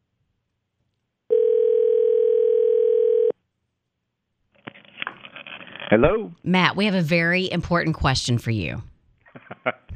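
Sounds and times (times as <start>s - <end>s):
telephone dial tone: 1.3s - 3.4s
speech: 5.9s - 8.9s.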